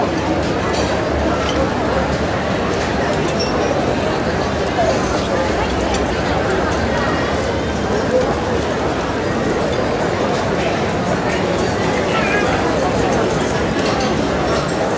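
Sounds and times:
large outdoor cafe crowd walla: 0:00.0 - 0:14.9.

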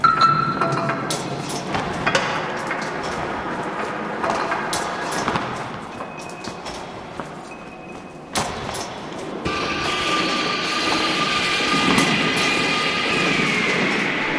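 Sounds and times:
construction site ambience: 0:00.0 - 0:14.3.

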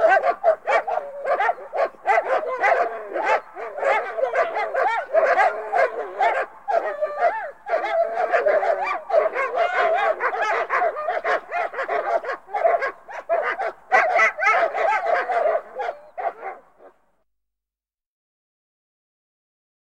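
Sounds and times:
group of dogs barking: 0:00.0 - 0:17.0.

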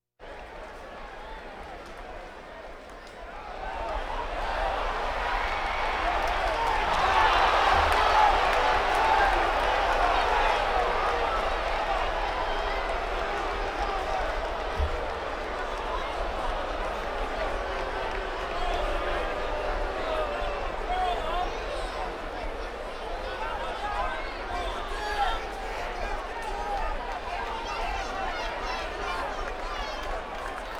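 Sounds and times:
crowds: 0:00.2 - 0:30.7.

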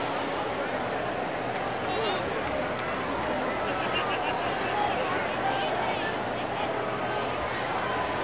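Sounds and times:
baseball crowd ambience: 0:00.0 - 0:08.2.

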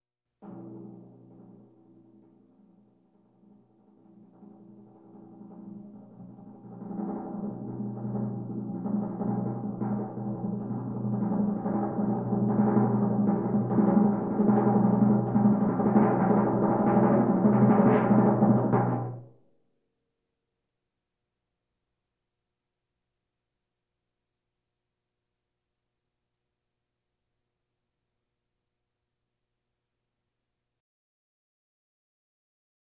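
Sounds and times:
bongos: 0:00.4 - 0:19.4
drums: 0:00.4 - 0:19.4
timpani rolls: 0:05.0 - 0:19.3.

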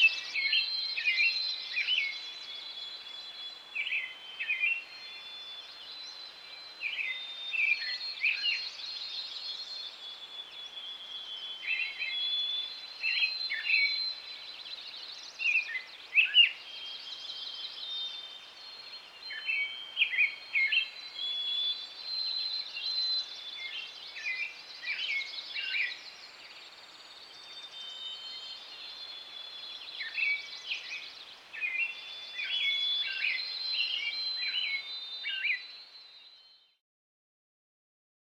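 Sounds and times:
forest ambience: 0:00.0 - 0:36.6.

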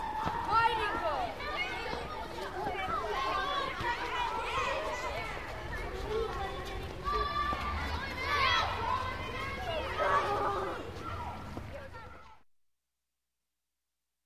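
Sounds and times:
children playing and yelling in a schoolyard: 0:00.0 - 0:12.4.

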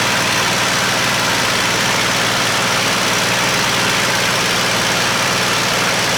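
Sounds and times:
P40 plane in flight: 0:00.0 - 0:06.1.

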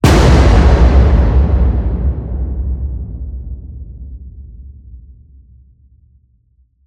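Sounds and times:
designed cinematic slam hit: 0:00.0 - 0:05.1.

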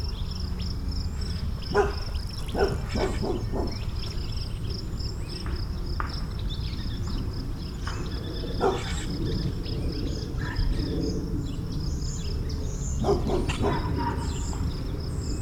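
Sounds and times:
birds in suburban morning: 0:00.0 - 0:15.4
insects in suburban morning: 0:00.0 - 0:15.4
dogs barking in suburban morning: 0:01.6 - 0:04.3, 0:07.9 - 0:09.5, 0:12.9 - 0:15.0.

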